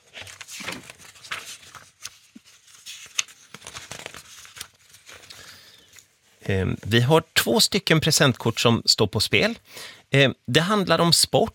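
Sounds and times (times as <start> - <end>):
pages flipping in a question binder: 0.0 - 6.5
speech: 6.5 - 11.5.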